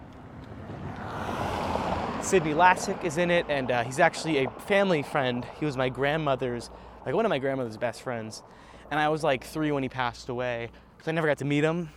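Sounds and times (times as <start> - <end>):
car passing by: 0.0 - 9.1
speech: 2.3 - 11.9.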